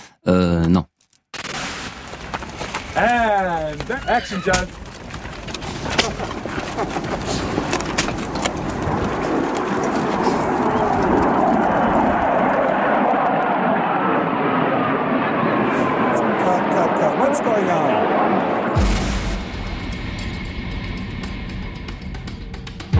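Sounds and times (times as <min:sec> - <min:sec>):
speech: 0:00.2 - 0:00.9, 0:03.0 - 0:04.8
military aircraft flying overhead: 0:03.6 - 0:22.8.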